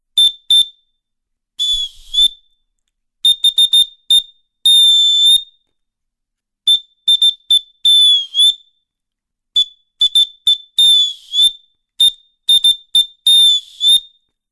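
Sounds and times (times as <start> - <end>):
tin whistle: 1.6 - 2.6, 3.2 - 5.7, 6.7 - 8.8, 9.6 - 14.2.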